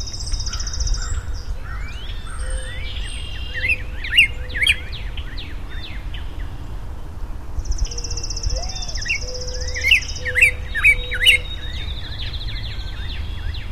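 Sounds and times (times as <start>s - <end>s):
unidentified bird calling: 0.0s - 5.1s, 7.8s - 13.6s.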